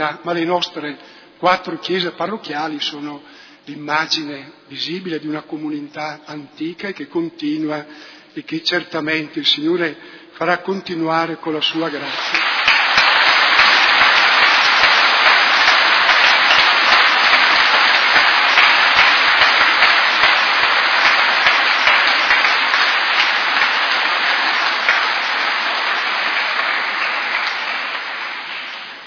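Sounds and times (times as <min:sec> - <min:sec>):
speech: 0:00.0 - 0:12.5
crowd applauding: 0:12.0 - 0:29.0.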